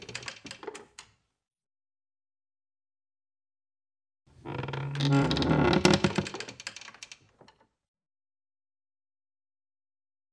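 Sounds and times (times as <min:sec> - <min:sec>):
heavy wood creaking: 0:04.4 - 0:06.4.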